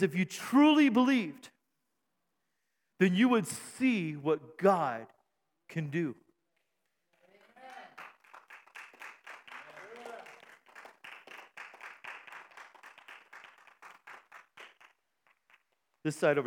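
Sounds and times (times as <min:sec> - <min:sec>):
speech: 0:00.0 - 0:01.5, 0:03.0 - 0:06.2, 0:16.0 - 0:16.4
scattered half-hearted audience clapping: 0:07.1 - 0:16.0.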